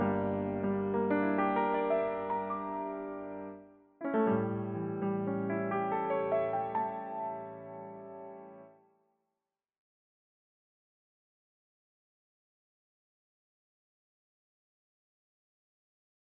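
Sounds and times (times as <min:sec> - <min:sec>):
music without violin intro: 0:00.0 - 0:09.1.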